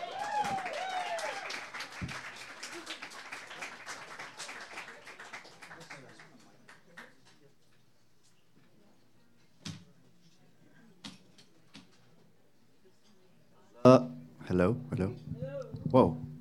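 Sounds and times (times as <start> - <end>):
audience applause: 0.0 - 7.2
speech: 14.0 - 16.2.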